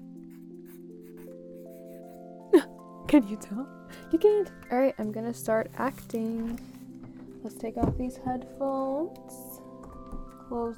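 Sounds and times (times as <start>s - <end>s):
pen writing a name on paper: 0.3s - 2.3s
speech: 2.5s - 6.7s, 7.4s - 9.5s, 10.5s - 10.7s.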